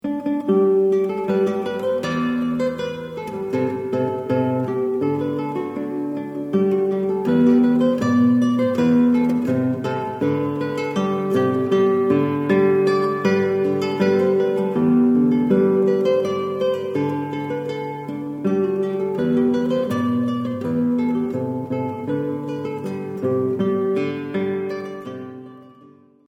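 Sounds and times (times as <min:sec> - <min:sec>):
solo guitar playing a folk tune: 0:00.0 - 0:26.2.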